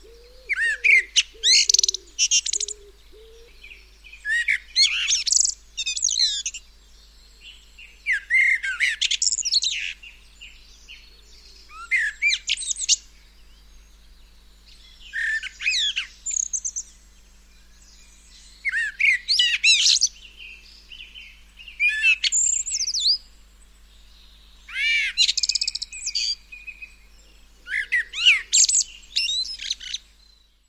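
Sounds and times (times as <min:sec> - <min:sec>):
common blackbird Turdus merula singing: 0:00.0 - 0:30.6.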